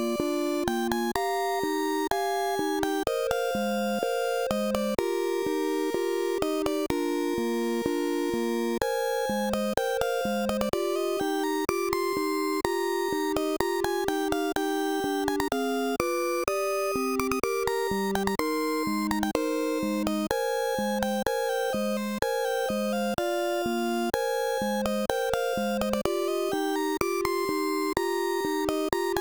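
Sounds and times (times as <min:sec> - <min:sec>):
slow melancholic C64 style music with refrain: 0:00.0 - 0:29.2.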